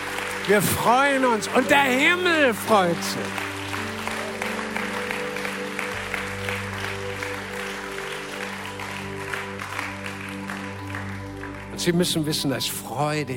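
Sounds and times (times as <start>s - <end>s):
audience applause: 0.0s - 12.4s
speech: 0.5s - 3.5s, 11.8s - 13.3s.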